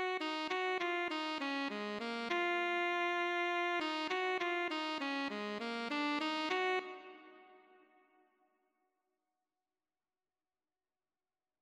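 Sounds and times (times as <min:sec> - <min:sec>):
alto saxophone: 0:00.0 - 0:08.0.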